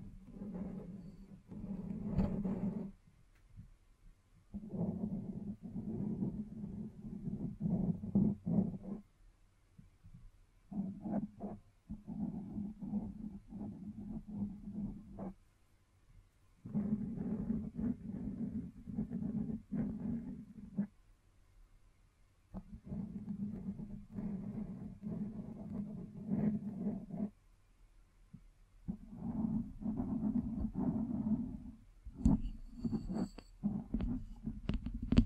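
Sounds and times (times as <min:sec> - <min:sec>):
scratching and tracing: 0:00.0 - 0:03.0, 0:04.5 - 0:09.1, 0:10.7 - 0:15.4, 0:16.6 - 0:21.0, 0:22.5 - 0:27.4, 0:28.8 - 0:35.2.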